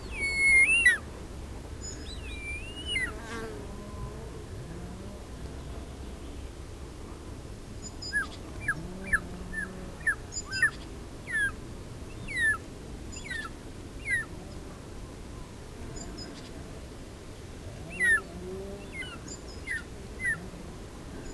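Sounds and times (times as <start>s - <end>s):
Short-toed Eagle calling: 0.0s - 1.0s, 1.8s - 3.2s, 7.9s - 11.6s, 12.2s - 12.6s, 13.2s - 14.3s, 17.9s - 20.5s.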